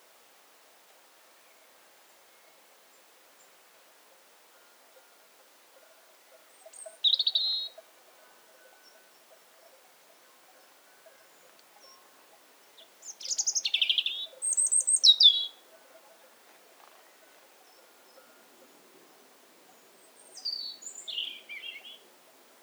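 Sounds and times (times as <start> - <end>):
European robin singing: 6.6 - 7.8, 11.8 - 16.1, 16.7 - 22.1.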